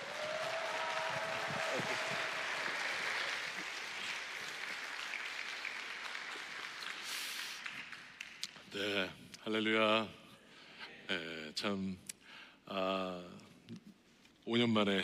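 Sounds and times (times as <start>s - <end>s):
audience applauding: 0.0s - 8.5s
speech: 9.6s - 10.2s, 11.1s - 12.1s, 12.7s - 13.8s, 14.5s - 15.0s.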